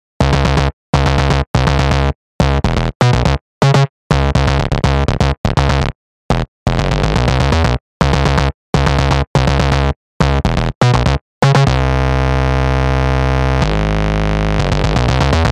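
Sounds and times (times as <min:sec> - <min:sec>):
bass: 0:00.0 - 0:15.5.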